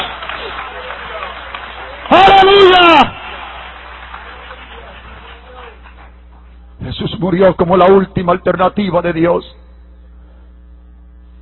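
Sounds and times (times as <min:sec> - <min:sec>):
audience applause: 0:00.0 - 0:06.5
speech: 0:07.2 - 0:09.6.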